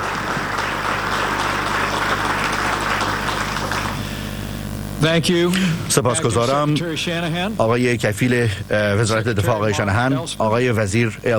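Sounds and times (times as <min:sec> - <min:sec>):
audience applause: 0:00.0 - 0:04.6
speech: 0:05.0 - 0:11.3.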